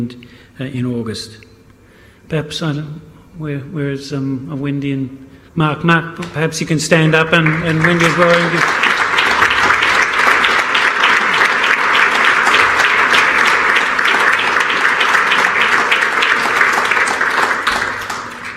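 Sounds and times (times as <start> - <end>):
speech: 0.0 - 1.5, 2.3 - 9.0
crowd applause: 7.3 - 18.5.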